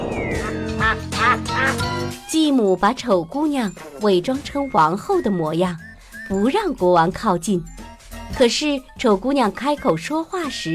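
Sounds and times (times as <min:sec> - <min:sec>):
duck quacking: 0:00.4 - 0:01.8
speech: 0:02.3 - 0:10.7.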